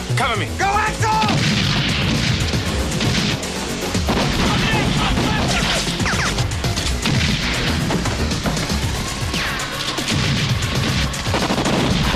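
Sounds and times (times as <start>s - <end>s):
speech: 0.2s - 1.4s
people shouting: 0.6s - 1.4s, 4.4s - 6.0s
rounds of gunfire: 1.2s - 8.7s, 9.3s - 12.1s.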